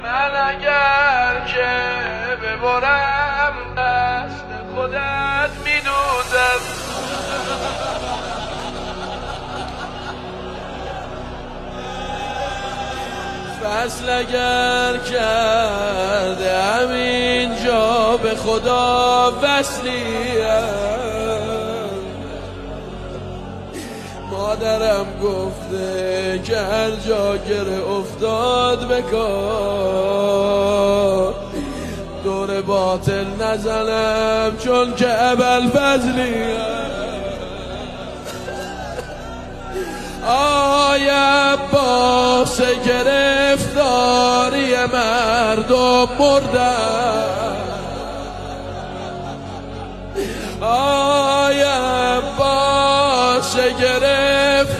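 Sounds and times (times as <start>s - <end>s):
devotional singing: 0.0s - 54.7s
laughter: 6.0s - 27.8s, 35.6s - 43.4s, 44.2s - 54.7s.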